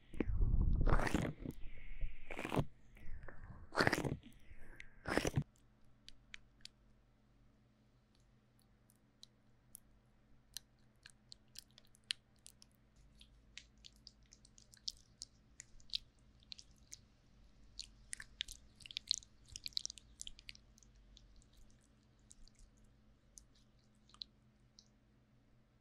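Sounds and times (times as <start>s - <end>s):
sticky aloe gel ear massage squelching: 0.9s - 2.7s, 3.7s - 5.5s, 11.0s - 24.9s.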